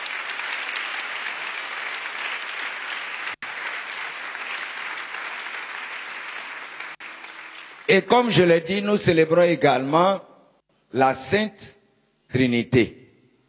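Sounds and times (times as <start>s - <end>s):
crowd clapping for the nuns at a Catholic gathering: 0.0s - 8.1s
speech: 7.9s - 10.3s, 10.9s - 13.0s.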